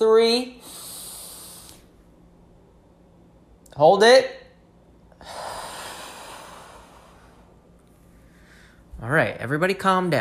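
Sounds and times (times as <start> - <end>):
speech: 0.0 - 0.7, 3.8 - 4.4, 9.0 - 10.1
group taking a deep breath together: 0.6 - 1.9, 5.1 - 7.6, 8.2 - 8.9.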